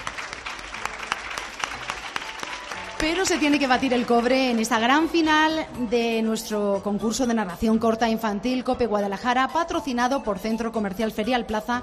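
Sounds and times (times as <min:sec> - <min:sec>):
audience applause: 0:00.0 - 0:05.2
speech: 0:03.0 - 0:11.8.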